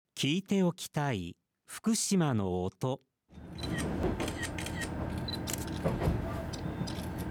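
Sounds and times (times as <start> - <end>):
speech: 0.2 - 4.3
camera shutter clicks: 3.6 - 5.9, 6.5 - 7.2.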